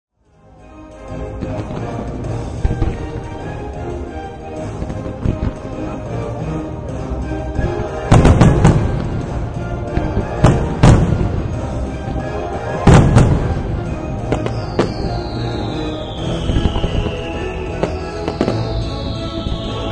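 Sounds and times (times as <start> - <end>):
orchestral music in background: 0.2 - 19.9
firework show: 1.4 - 3.4, 4.8 - 5.9, 7.6 - 19.9.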